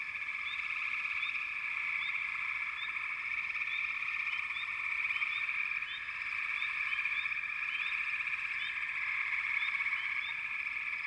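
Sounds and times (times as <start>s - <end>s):
frog chorus trilling: 0.0s - 11.0s.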